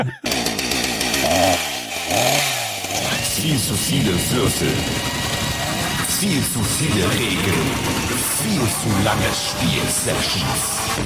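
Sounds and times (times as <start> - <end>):
speech: 0.0 - 0.4, 3.4 - 5.3, 6.2 - 11.0
improvised vocal jingle with buzzy revving drone: 0.1 - 11.0.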